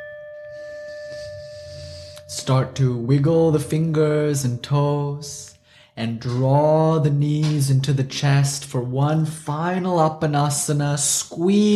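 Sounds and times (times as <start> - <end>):
meditation bell: 0.0 - 5.8
speech: 2.4 - 11.7.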